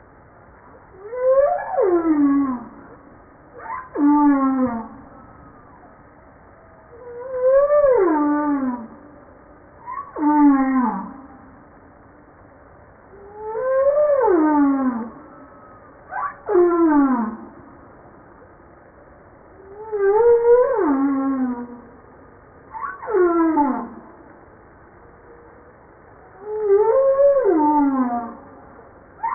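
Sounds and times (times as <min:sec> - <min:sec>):
humpback whale song: 0:00.9 - 0:11.8, 0:13.1 - 0:17.8, 0:19.5 - 0:22.1, 0:22.7 - 0:24.3, 0:25.0 - 0:29.3.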